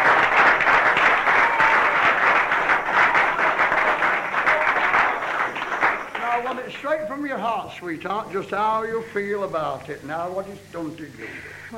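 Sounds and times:
audience applause: 0.0 - 7.0
speech: 7.6 - 11.7.

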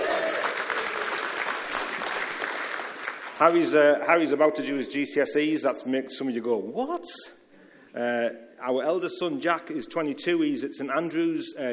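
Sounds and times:
audience applause: 0.0 - 3.7
speech: 3.4 - 11.7.

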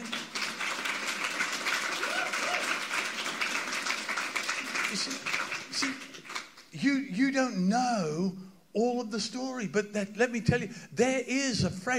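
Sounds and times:
audience applause: 0.0 - 6.7
speech: 6.8 - 11.9.

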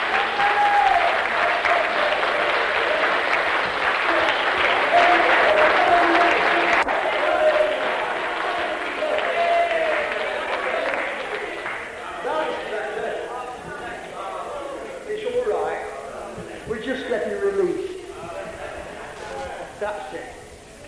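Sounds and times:
faint cheering: 0.0 - 15.1
large crowd applause: 0.0 - 20.6.

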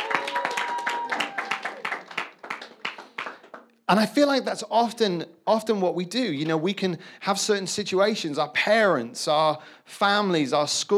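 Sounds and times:
round of applause from a group: 0.0 - 3.8
speech: 3.9 - 10.9.

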